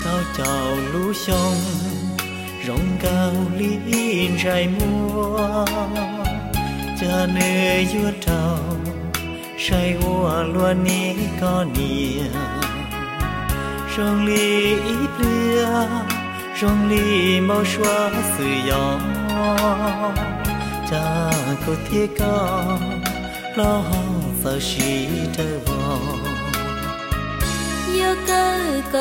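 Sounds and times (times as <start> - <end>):
soul music: 0.0 - 29.0.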